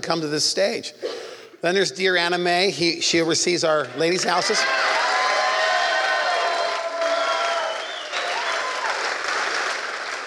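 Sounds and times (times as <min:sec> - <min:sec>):
speech: 0:00.1 - 0:05.0
crowd cheering with whoops and shouts: 0:03.7 - 0:10.2
dense continuous audience applause: 0:03.7 - 0:10.2.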